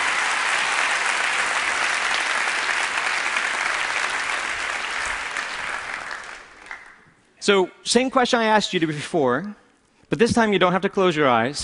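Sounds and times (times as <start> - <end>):
audience applauding: 0.0 - 7.1
speech: 7.4 - 11.6.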